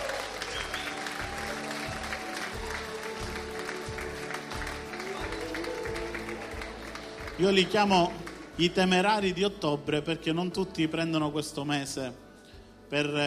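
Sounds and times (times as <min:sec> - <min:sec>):
audience applause: 0:00.0 - 0:08.8
speech: 0:07.4 - 0:12.2, 0:12.9 - 0:13.2.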